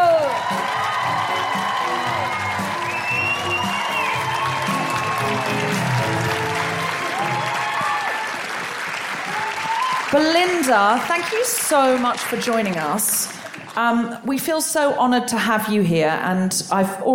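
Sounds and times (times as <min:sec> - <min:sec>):
audience woohooing: 0:00.0 - 0:10.2
audience applause: 0:00.0 - 0:13.8
speech: 0:10.2 - 0:17.1.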